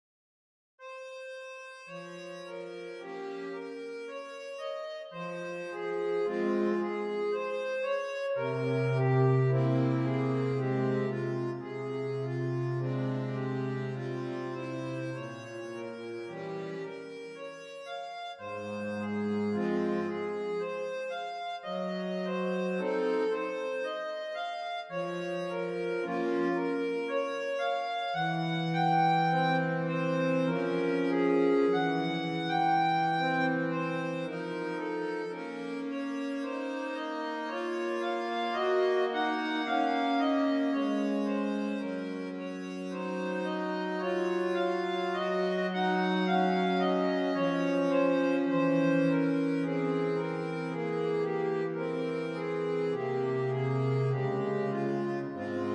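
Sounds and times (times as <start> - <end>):
harmonium verset in F minor: 0.8 - 55.7.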